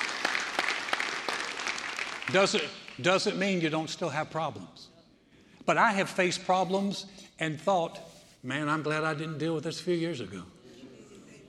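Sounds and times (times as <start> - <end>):
audience clapping during a talk: 0.0 - 3.4
speech: 2.3 - 4.9, 5.6 - 10.6.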